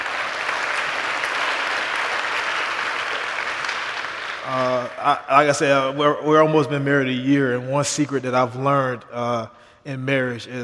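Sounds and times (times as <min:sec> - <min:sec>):
audience applause: 0:00.0 - 0:05.6
speech: 0:04.5 - 0:10.6.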